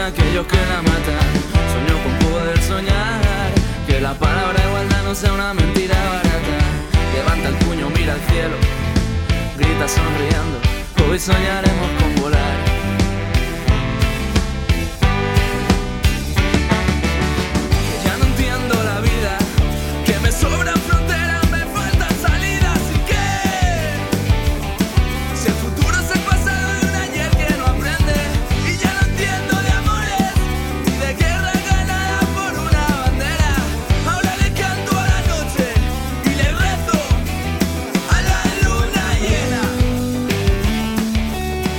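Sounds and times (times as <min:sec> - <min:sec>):
speech: 0:00.0 - 0:01.5, 0:03.9 - 0:06.6, 0:07.2 - 0:08.8, 0:09.6 - 0:12.5
full-band rock song: 0:00.0 - 0:41.7.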